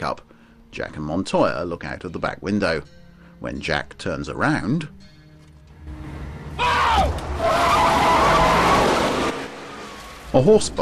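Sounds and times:
speech: 0:00.0 - 0:05.1, 0:10.3 - 0:10.8
pickup truck skidding and rumbling: 0:05.6 - 0:10.8
pickup truck tires squealing in a swerve: 0:05.9 - 0:10.8.

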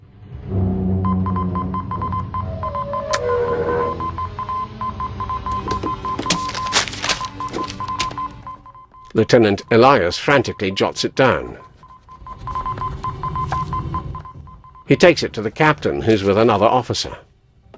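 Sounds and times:
Morse code message beeping: 0:01.0 - 0:15.2
speech: 0:09.2 - 0:11.7, 0:14.9 - 0:17.3.

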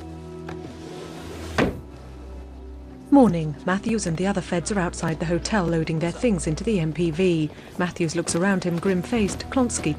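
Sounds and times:
drawer being pushed shut: 0:00.8 - 0:01.9
speech: 0:03.1 - 0:09.9.

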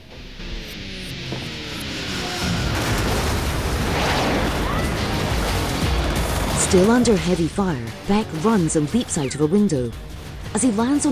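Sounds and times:
vehicles crashing into a beam: 0:00.0 - 0:11.1
loud broadband rumbling roar: 0:01.6 - 0:08.1
speech: 0:06.7 - 0:11.1.

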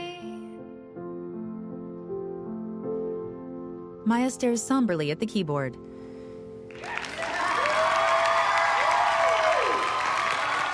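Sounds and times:
speech: 0:04.1 - 0:06.0
audience clapping: 0:06.7 - 0:10.7.

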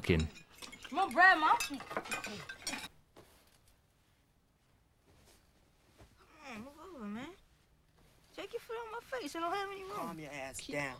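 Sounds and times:
speech: 0:00.0 - 0:02.6, 0:08.4 - 0:10.9
plates and cutlery clinking as Grandma dishes out dinner: 0:00.0 - 0:02.9.

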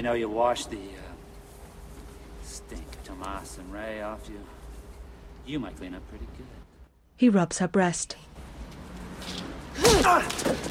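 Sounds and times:
speech: 0:00.0 - 0:01.1, 0:02.5 - 0:04.6, 0:05.5 - 0:06.6, 0:07.2 - 0:08.4, 0:09.2 - 0:10.6
punch thud as a woman decks a man: 0:09.8 - 0:10.6.

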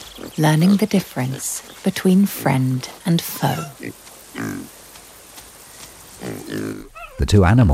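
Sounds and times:
speech: 0:00.4 - 0:04.8, 0:06.2 - 0:07.7
small wild pig grunting to warn off a cub: 0:03.5 - 0:04.7, 0:06.2 - 0:07.3.

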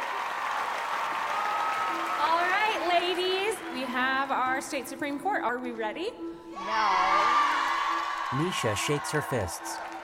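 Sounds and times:
crowd applause: 0:00.0 - 0:03.9, 0:07.0 - 0:10.0
speech: 0:04.0 - 0:07.4, 0:08.3 - 0:09.9.

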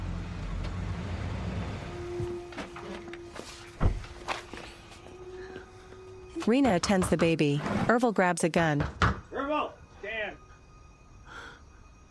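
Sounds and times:
car engine rumbling: 0:00.0 - 0:05.4
footsteps: 0:02.2 - 0:05.7
speech: 0:06.4 - 0:09.7.

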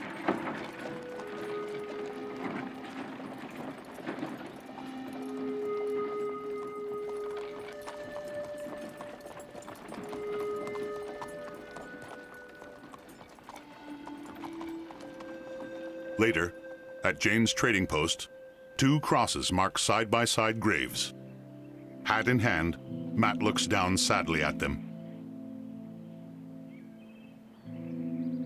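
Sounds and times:
horse hooves clip-clopping: 0:00.0 - 0:16.8
horse-drawn wagon wheels and mechanism creaking and rattling: 0:00.0 - 0:17.4
speech: 0:16.2 - 0:21.2, 0:22.1 - 0:24.9.

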